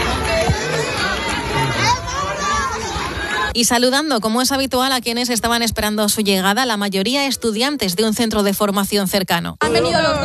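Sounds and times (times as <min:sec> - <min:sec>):
crowd cheering and shouting: 0:00.0 - 0:03.6
speech: 0:03.6 - 0:10.2.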